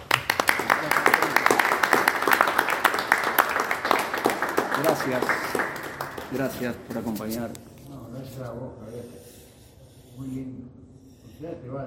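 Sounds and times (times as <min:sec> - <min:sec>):
audience clapping: 0:00.0 - 0:07.2
speech: 0:05.0 - 0:05.6, 0:06.3 - 0:09.3, 0:10.2 - 0:10.8, 0:11.4 - 0:11.8.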